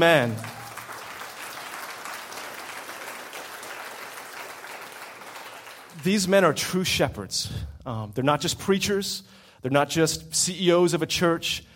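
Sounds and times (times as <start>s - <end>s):
speech: 0.0s - 0.5s, 6.0s - 11.7s
audience applause: 0.0s - 6.2s.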